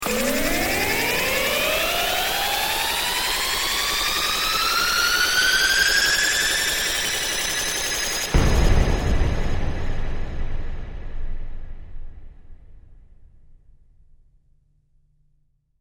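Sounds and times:
futuristic rising sound: 0.0s - 8.4s
bang: 8.2s - 13.9s.

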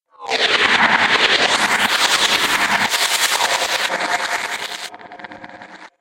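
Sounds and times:
shaky laser: 0.3s - 5.0s.

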